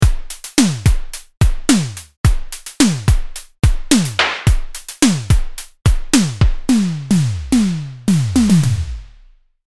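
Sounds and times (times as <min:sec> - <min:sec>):
drum: 0:00.0 - 0:09.2.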